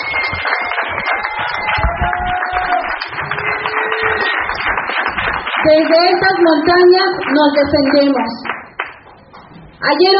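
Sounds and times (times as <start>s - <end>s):
faint cheers and whistles: 0.0s - 4.6s
audience applause: 0.0s - 9.0s
speech: 5.6s - 8.4s, 9.8s - 10.1s.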